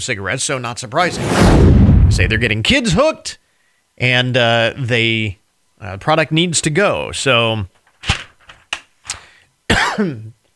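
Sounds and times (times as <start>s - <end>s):
speech: 0.0s - 3.4s, 4.0s - 8.2s, 10.0s - 10.4s
person coughing after swallowing wrong: 9.7s - 10.3s
strained voiced throat clearing: 9.7s - 10.4s.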